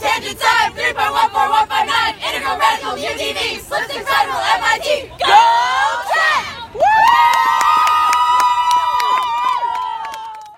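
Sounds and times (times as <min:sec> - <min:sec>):
young students chanting a school cheer: 0:00.0 - 0:10.2
crowd whooping and cheering: 0:06.7 - 0:10.5.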